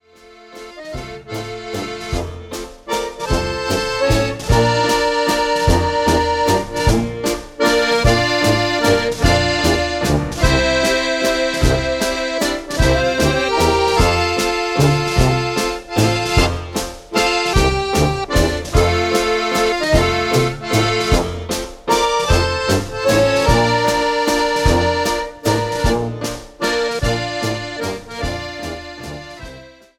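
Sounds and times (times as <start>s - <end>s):
waltz music: 0.0s - 29.9s.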